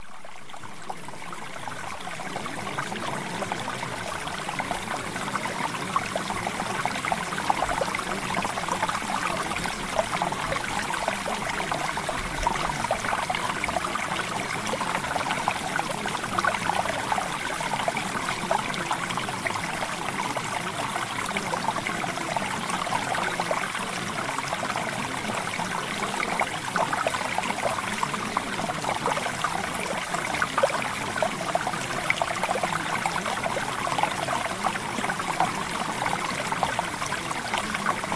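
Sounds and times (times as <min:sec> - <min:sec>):
water: 0:00.0 - 0:38.1.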